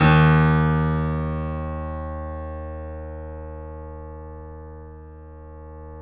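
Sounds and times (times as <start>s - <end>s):
piano note D sharp: 0.0s - 5.9s.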